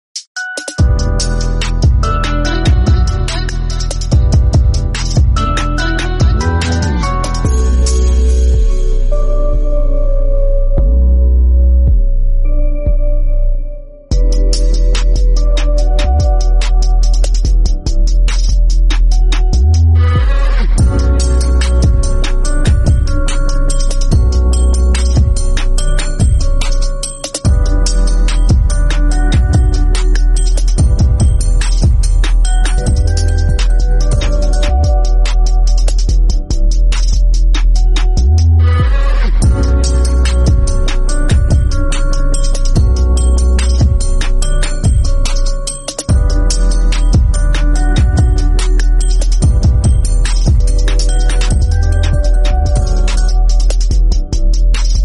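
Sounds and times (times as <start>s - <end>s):
trap instrumental beat: 0.2s - 13.3s, 14.1s - 55.0s.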